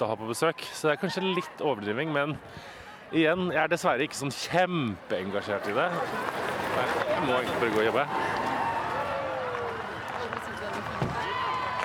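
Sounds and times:
crowd cheering as a royal motorcade arrives: 0.0 - 2.3, 5.2 - 11.8
speech: 0.0 - 8.3
crowd applause as a royal motorcade arrives: 5.4 - 11.8.

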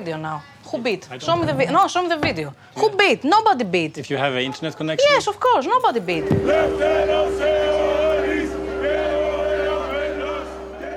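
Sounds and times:
speech: 0.0 - 8.0
Golden Dawn supporters chanting a political slogan: 6.2 - 10.9.

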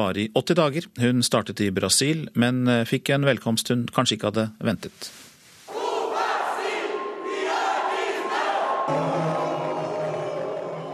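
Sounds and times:
speech: 0.0 - 5.2
demonstrators chanting against Yoani Sánchez in Bahia: 5.7 - 10.9.

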